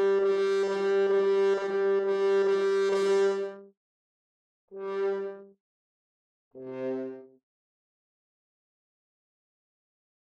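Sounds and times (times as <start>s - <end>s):
horn: 0.0s - 3.6s, 6.6s - 7.3s.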